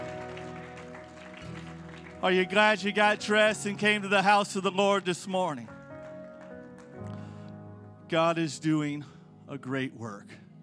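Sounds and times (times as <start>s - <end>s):
audience clapping hands: 0.0s - 7.4s
speech: 2.2s - 5.8s, 8.1s - 10.4s.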